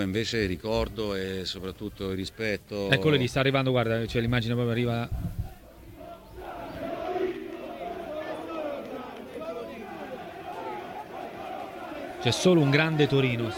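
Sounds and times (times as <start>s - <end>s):
speech: 0.0s - 5.4s, 12.2s - 13.5s
large stadium crowd roaring and jeering: 5.6s - 13.5s.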